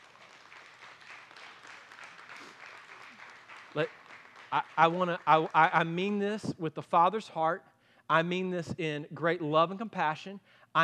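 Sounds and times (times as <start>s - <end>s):
church audience applause: 0.0s - 6.0s
speech: 3.8s - 10.8s.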